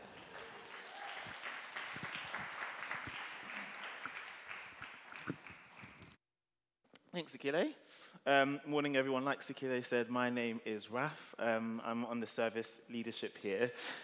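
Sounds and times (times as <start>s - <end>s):
audience at a church service applauding to welcome a speaker: 0.0s - 6.2s
speech: 7.2s - 14.0s.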